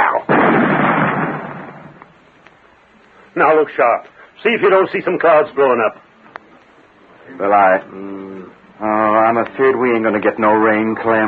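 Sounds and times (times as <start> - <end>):
explosive charge blast after a lit fuse: 0.0 - 2.2
speech: 3.4 - 6.1, 7.4 - 11.2.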